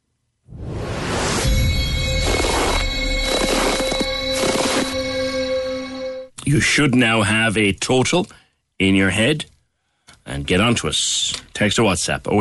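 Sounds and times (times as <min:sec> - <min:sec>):
heavy footsteps: 0:01.4 - 0:05.5
speech: 0:06.5 - 0:09.5, 0:10.3 - 0:12.3.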